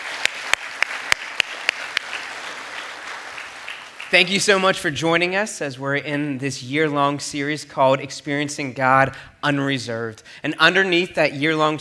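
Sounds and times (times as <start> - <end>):
audience applause: 0.0 - 4.4
speech: 4.1 - 11.8.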